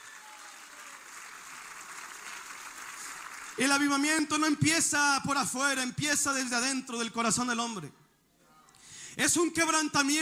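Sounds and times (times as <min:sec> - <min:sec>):
crowd clapping: 0:00.0 - 0:04.0
speech: 0:03.6 - 0:08.0, 0:09.2 - 0:10.2.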